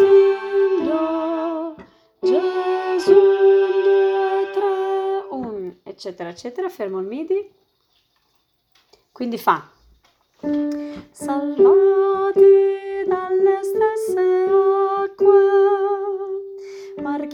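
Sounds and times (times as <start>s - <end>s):
soprano singing: 0.0s - 5.7s, 11.0s - 17.3s.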